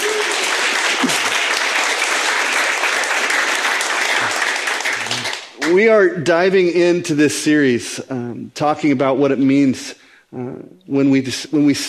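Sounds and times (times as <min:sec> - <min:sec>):
audience clapping: 0:00.0 - 0:05.8
speech: 0:05.7 - 0:11.8.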